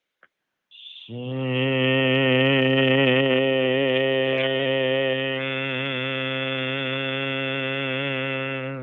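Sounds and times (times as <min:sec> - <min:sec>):
person making a qigong heart sound, soft sh to hummed ng: 0:00.8 - 0:08.8.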